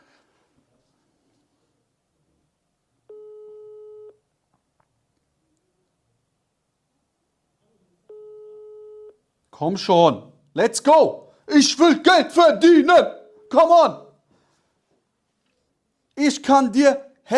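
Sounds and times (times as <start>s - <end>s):
faint noise: 0.0s - 17.3s
phone ringback tone on a call: 3.1s - 4.2s, 8.1s - 9.2s
speech: 9.6s - 14.0s, 16.2s - 17.3s.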